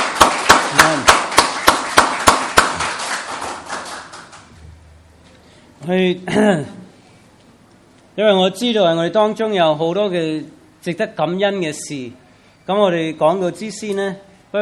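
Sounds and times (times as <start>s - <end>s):
audience clapping hands: 0.0s - 4.5s
speech: 5.9s - 6.8s, 8.2s - 14.6s.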